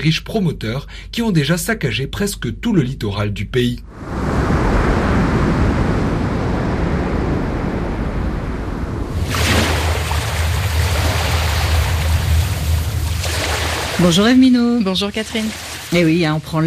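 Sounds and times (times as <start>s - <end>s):
speech: 0.0s - 4.3s, 14.0s - 16.6s
open sea waves rushing: 3.8s - 16.6s
bright hissing wash of water: 3.9s - 16.6s
low boat engine hum: 8.1s - 16.6s.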